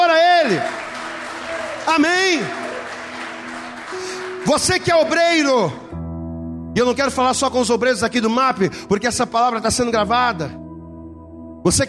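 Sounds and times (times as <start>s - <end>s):
audience applause: 0.0s - 5.4s
speech: 0.5s - 0.8s, 1.9s - 2.6s, 4.4s - 5.9s, 6.8s - 10.6s, 11.6s - 11.8s.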